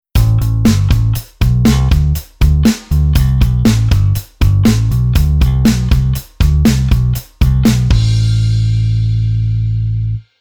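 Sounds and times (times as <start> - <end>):
bass: 0.1 - 10.3.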